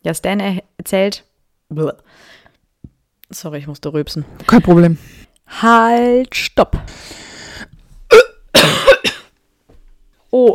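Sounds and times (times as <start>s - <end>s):
speech: 0.0s - 2.4s, 3.3s - 7.2s, 10.3s - 10.5s
wet choking cough coughing up saliva: 8.1s - 9.3s.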